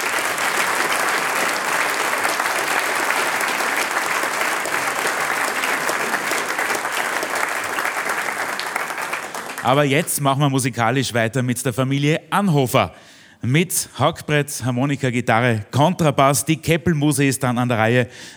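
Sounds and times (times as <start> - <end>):
audience applause: 0.0 - 10.1
speech: 9.6 - 18.3.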